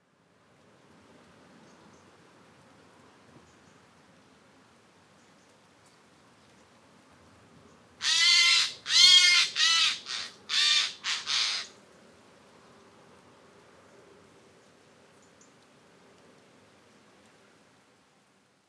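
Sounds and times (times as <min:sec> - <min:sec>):
Garrulus glandarius: 0:08.0 - 0:11.7.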